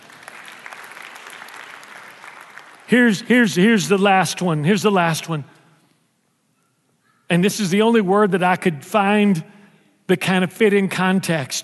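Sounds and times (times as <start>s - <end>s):
audience applause: 0.0s - 2.9s
speech: 2.9s - 5.6s, 7.3s - 11.6s.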